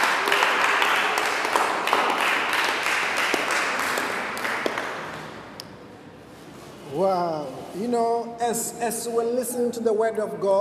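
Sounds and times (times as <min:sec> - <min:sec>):
audience clapping: 0:00.0 - 0:05.4
speech: 0:07.9 - 0:10.6.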